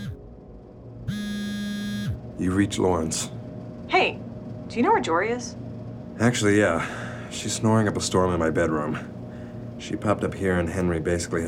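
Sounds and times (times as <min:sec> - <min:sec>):
phone ringing: 0:01.1 - 0:02.2
speech: 0:02.4 - 0:03.4, 0:04.0 - 0:05.6, 0:06.2 - 0:09.2, 0:09.8 - 0:11.4.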